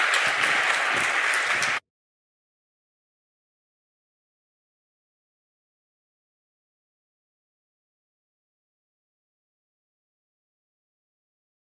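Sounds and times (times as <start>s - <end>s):
audience applause: 0.0s - 1.9s.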